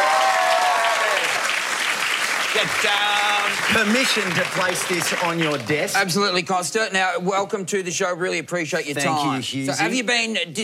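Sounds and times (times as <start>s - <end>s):
studio audience applause for a TV talk show guest: 0.0s - 6.3s
speech: 2.6s - 10.6s.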